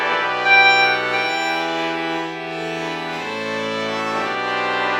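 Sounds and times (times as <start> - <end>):
trumpet violin LPC morph: 0.2 - 4.9.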